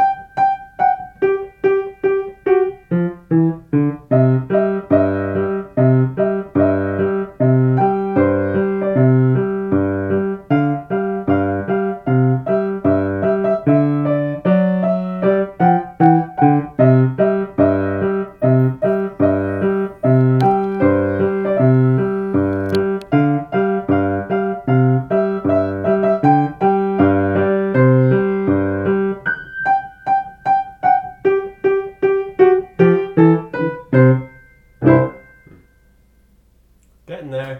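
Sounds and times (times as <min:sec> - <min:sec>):
piano melody: 0:00.0 - 0:36.3.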